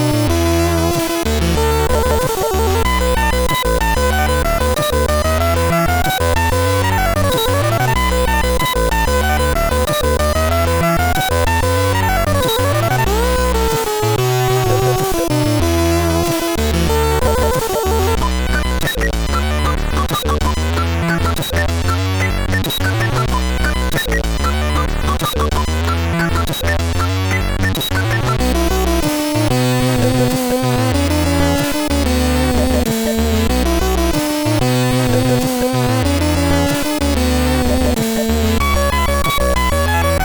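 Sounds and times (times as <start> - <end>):
chiptune music from a SID 8580R5 chip: 0.0 - 40.2.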